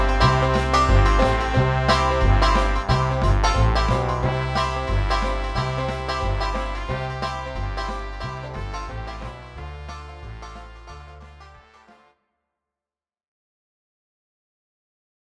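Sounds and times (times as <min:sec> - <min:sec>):
jazz band playing: 0:00.0 - 0:11.7.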